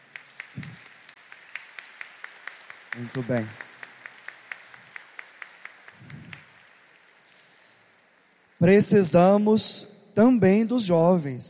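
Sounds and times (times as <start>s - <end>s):
audience applause of welcome: 0.0s - 7.5s
speech: 3.0s - 3.6s, 8.6s - 11.4s.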